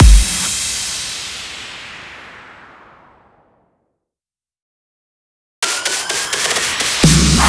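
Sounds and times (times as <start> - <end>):
club music drum fills: 0.0 - 2.2, 5.6 - 7.4.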